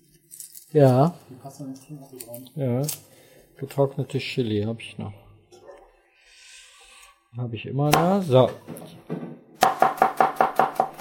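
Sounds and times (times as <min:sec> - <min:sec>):
speech: 0:00.7 - 0:05.2, 0:07.3 - 0:09.2
kitchen knife chopping garlic on a board: 0:07.9 - 0:11.0.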